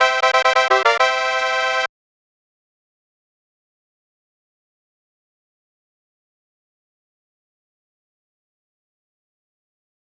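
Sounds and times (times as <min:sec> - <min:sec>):
bonus fanfare: 0:00.0 - 0:01.9.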